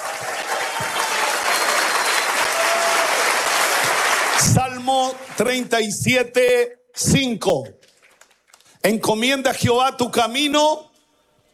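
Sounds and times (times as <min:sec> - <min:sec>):
loud audience applause: 0:00.0 - 0:05.5
speech: 0:04.4 - 0:07.8, 0:08.8 - 0:10.9.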